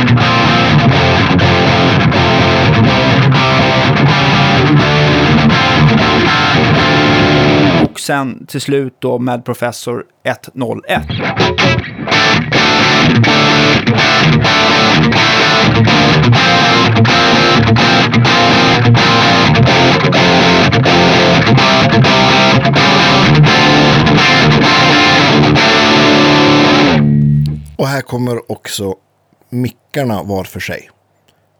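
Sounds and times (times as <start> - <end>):
heavily distorted electric guitar riff through an amplifier: 0.0 - 8.0, 10.9 - 27.8
speech: 8.1 - 22.8, 27.9 - 31.0.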